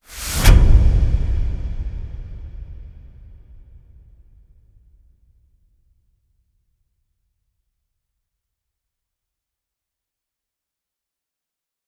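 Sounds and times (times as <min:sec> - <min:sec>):
swoosh: 0:00.0 - 0:03.8
big impact with metal top: 0:00.1 - 0:03.5.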